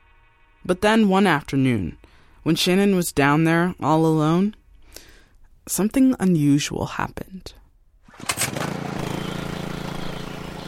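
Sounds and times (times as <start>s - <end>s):
speech: 0.6s - 4.6s, 5.7s - 7.6s
small gasoline engine driving a water pump: 8.1s - 10.6s.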